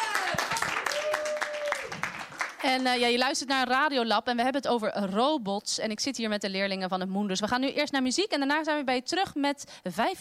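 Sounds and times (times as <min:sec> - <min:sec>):
audience applause: 0:00.0 - 0:02.6
speech: 0:02.6 - 0:10.1.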